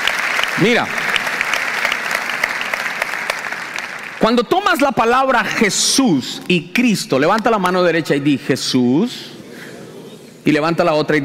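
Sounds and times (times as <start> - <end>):
congregation applause in a church: 0.0 - 5.8
speech: 0.6 - 1.0, 4.2 - 9.4, 10.4 - 11.2.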